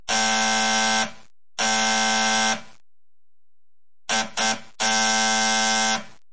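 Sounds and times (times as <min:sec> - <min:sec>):
doorbell buzzing impatiently: 0:00.1 - 0:02.7, 0:04.1 - 0:06.2.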